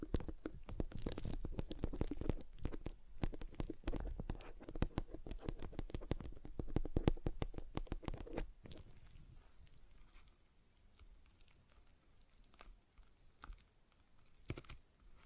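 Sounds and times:
stress ball squeezed and kneaded: 0.0 - 8.8.

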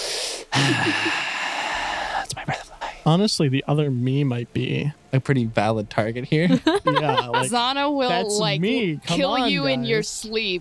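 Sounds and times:
voice imitating heavy breathing: 0.0 - 3.0
laughter: 0.6 - 1.3, 6.4 - 9.7
speech: 0.6 - 1.3, 3.1 - 10.5.

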